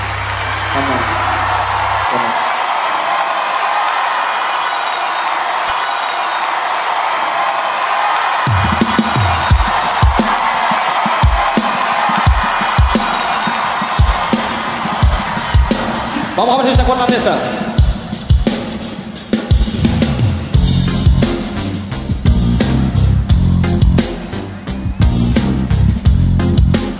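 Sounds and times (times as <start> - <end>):
church congregation cheering and applauding: 0.0 - 26.9
speech: 0.8 - 1.2, 16.4 - 17.6
steady rhythmic thumping beat: 8.5 - 26.9.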